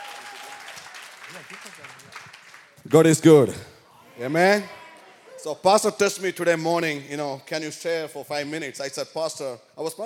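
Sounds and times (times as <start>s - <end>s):
audience clapping: 0.0s - 3.4s
speech: 1.3s - 4.8s, 5.4s - 10.0s.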